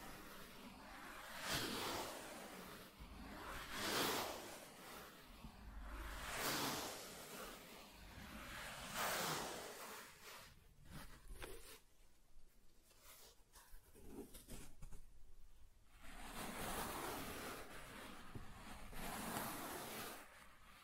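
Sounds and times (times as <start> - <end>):
soft tracing across smooth and rough surfaces: 0.0 - 20.8.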